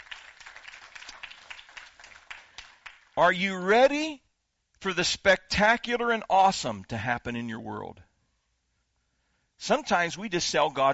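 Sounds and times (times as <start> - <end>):
audience clapping: 0.0 - 3.2
speech: 3.2 - 4.2, 4.8 - 8.1, 9.6 - 10.9.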